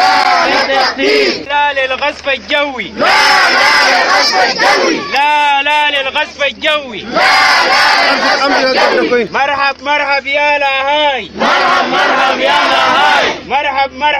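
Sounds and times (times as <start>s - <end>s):
displaced people chanting slogans against Bashir at a Darfur camp protest: 0.0s - 1.5s, 2.8s - 5.2s, 7.0s - 9.3s, 11.2s - 13.5s
speech: 0.9s - 14.1s.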